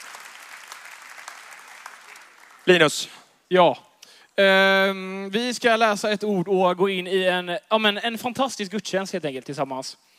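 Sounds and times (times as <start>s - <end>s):
audience applause during a church service: 0.0s - 2.9s
speech: 2.6s - 10.1s.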